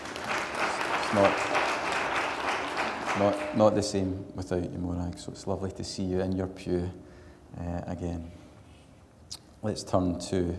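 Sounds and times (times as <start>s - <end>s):
audience applause: 0.0s - 3.6s
speech: 1.1s - 1.6s, 3.2s - 8.4s, 9.6s - 10.5s.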